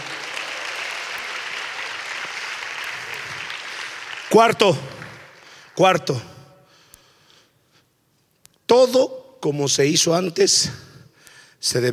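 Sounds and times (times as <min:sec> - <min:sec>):
audience applause: 0:00.0 - 0:05.9
speech: 0:04.3 - 0:05.0, 0:05.8 - 0:06.3, 0:08.7 - 0:10.9, 0:11.6 - 0:11.9.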